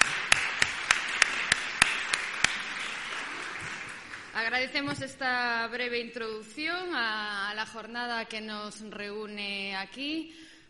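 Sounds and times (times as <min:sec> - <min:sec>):
audience applause: 0:00.0 - 0:04.6
speech: 0:04.4 - 0:10.5.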